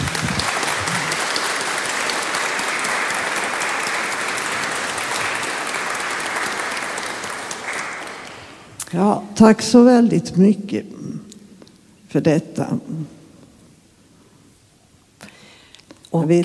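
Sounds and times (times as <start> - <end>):
audience applause: 0.0 - 8.7
speech: 8.9 - 11.0, 12.1 - 13.2, 16.2 - 16.4.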